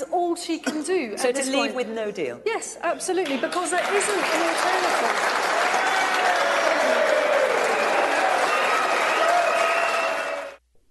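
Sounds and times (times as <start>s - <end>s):
speech: 0.1s - 6.5s
crowd voices: 3.2s - 10.6s
studio audience at a political debate on Brexit applauding: 3.2s - 10.6s.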